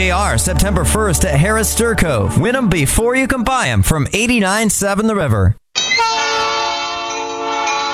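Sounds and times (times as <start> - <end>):
speech: 0.1 - 5.6
locomotive train horn: 6.0 - 7.9.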